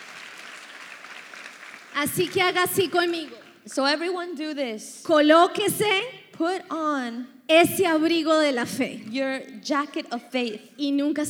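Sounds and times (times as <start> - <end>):
audience round of applause: 0.0 - 3.7
speech: 2.0 - 11.2.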